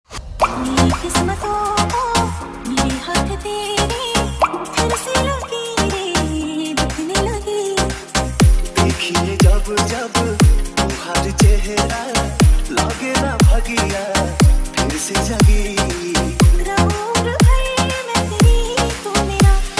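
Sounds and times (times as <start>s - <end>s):
Hindi remix song: 0.1s - 19.7s.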